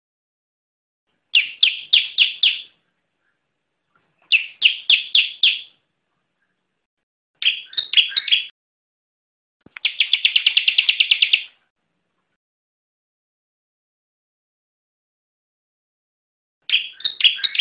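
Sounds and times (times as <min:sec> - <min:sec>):
bar-winged prinia song with rapid trill and ringing chirps: 0:01.3 - 0:05.8, 0:07.4 - 0:08.5, 0:09.8 - 0:11.6, 0:16.7 - 0:17.6.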